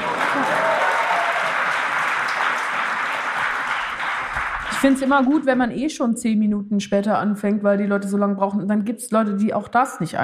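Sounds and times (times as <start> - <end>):
audience applause: 0.0 - 5.4
speech: 4.8 - 10.2.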